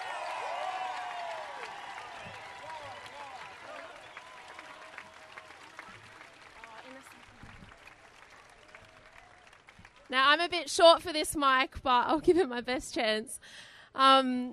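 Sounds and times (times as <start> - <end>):
crowd applause: 0.0 - 10.5
speech: 10.1 - 14.5.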